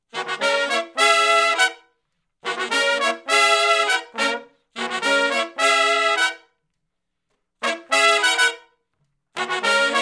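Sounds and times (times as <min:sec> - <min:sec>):
R&B horn section riff in F sharp harmony: 0:00.1 - 0:01.8, 0:02.4 - 0:06.4, 0:07.6 - 0:08.7, 0:09.4 - 0:10.0.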